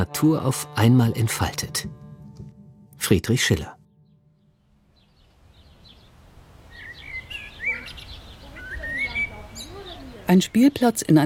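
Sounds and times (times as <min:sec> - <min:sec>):
speech: 0:00.0 - 0:02.0, 0:03.0 - 0:03.8, 0:10.3 - 0:11.2
birds chirping at a playground in a residential area of Schwerin: 0:03.2 - 0:11.2.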